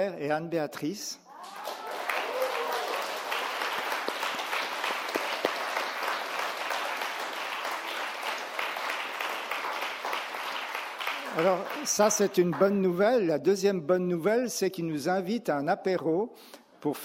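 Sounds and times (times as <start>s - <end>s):
speech: 0.0s - 1.7s, 11.4s - 17.0s
church audience applause for a couple's 50th wedding anniversary: 1.3s - 13.2s.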